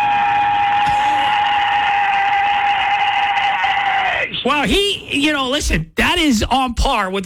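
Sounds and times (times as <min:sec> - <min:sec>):
replayed growl-like scream: 0:00.0 - 0:04.5
speech: 0:04.6 - 0:07.2.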